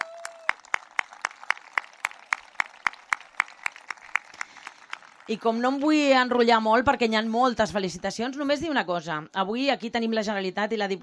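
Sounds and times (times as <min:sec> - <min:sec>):
audience applause: 0:00.0 - 0:06.3
speech: 0:05.3 - 0:11.0.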